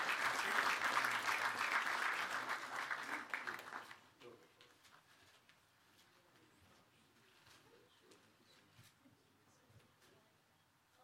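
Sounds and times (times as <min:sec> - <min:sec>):
church congregation applauding: 0:00.0 - 0:04.2.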